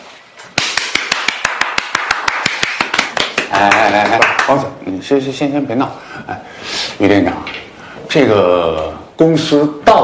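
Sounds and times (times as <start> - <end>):
exaggerated hand clapping by a single person: 0.5 - 4.6
speech: 3.5 - 10.0.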